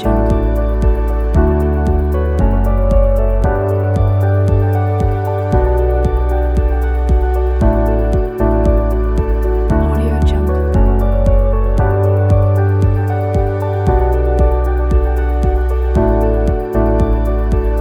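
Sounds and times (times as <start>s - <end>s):
calm inspiring corporate background music loop: 0.0s - 17.7s.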